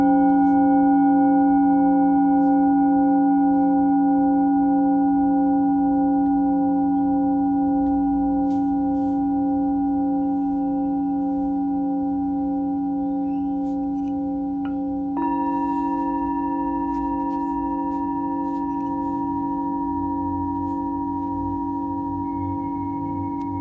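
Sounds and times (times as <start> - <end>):
singing bowl ringing for sound healing from Mexico: 0.0 - 23.6.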